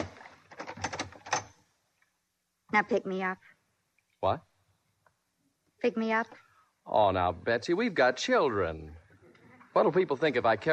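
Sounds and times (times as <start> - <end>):
flat door opening clicks and rattles: 0.0 - 1.6
speech: 2.8 - 3.6, 4.2 - 4.5, 5.8 - 9.0, 9.8 - 10.7.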